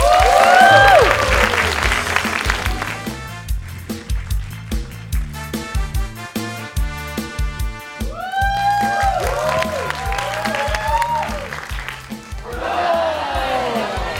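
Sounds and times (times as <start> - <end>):
audience applause for a stand-up comedian: 0.0 - 5.4, 8.1 - 14.0.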